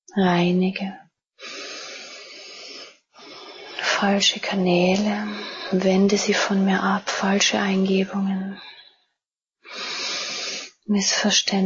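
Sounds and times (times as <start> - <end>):
speech: 0.1 - 1.6, 4.0 - 8.8, 10.9 - 11.6
slow breathing during a German guided healing meditation: 1.4 - 4.0, 5.1 - 5.8, 9.6 - 10.8.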